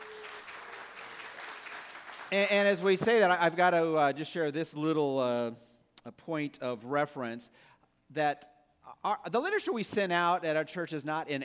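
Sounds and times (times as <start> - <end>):
audience applause: 0.0 - 2.5
speech: 2.3 - 11.4.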